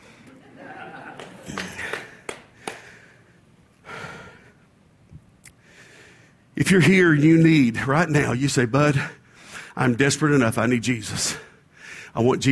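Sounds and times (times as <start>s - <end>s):
laughter: 0.2s - 2.4s
preacher breathing heavily mid-sermon: 1.4s - 4.6s, 5.6s - 6.4s, 9.2s - 9.8s
speech: 6.6s - 9.2s, 9.8s - 11.5s, 12.2s - 12.5s.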